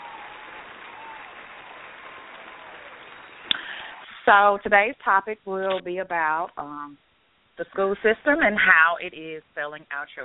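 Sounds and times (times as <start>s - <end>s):
audience applause: 0.0s - 4.2s
speech: 4.3s - 7.0s, 7.6s - 10.2s.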